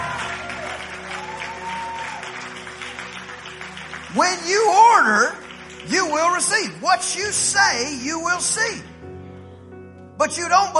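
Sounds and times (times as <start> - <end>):
audience clapping and applauding: 0.0 - 7.4
speech: 4.1 - 8.9, 10.2 - 10.7.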